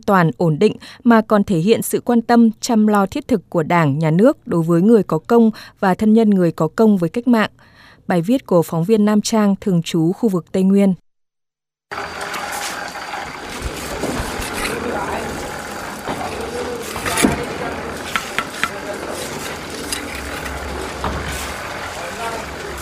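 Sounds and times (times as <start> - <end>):
speech: 0.1 - 11.0, 11.9 - 12.4
concrete mixer churning: 11.9 - 22.8
repeated hammering: 16.1 - 18.9.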